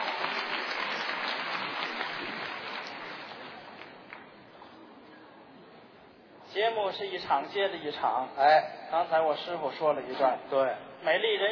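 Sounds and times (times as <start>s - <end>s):
crowd applause: 0.0s - 4.2s
speech: 6.6s - 11.5s.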